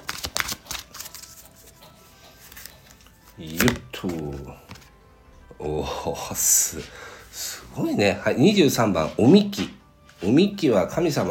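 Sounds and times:
friend cards snapping and rustling as one is drawn: 0.0 - 4.9
speech: 3.4 - 4.6, 5.6 - 11.3.

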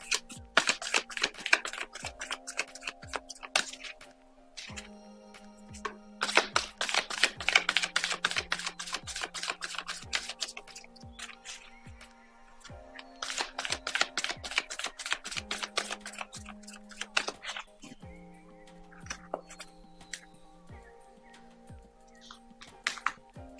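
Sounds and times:
tarot or oracle cards being shuffled: 0.0 - 4.9, 5.8 - 11.6, 13.1 - 17.8.

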